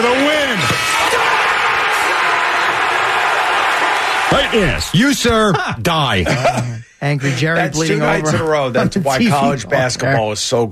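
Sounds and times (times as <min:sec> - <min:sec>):
basketball crowd cheering and clapping: 0:00.0 - 0:05.6
laughter: 0:04.3 - 0:10.3
speech: 0:04.3 - 0:10.7.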